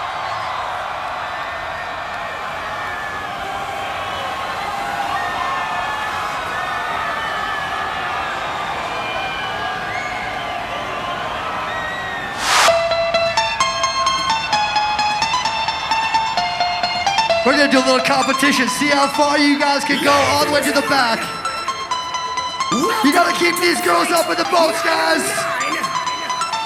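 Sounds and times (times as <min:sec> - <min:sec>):
big crowd cheering and shouting: 0:00.0 - 0:12.8, 0:14.2 - 0:26.6
whoosh: 0:12.4 - 0:13.0
speech: 0:17.6 - 0:21.4, 0:23.0 - 0:25.5
laughter: 0:17.7 - 0:26.6.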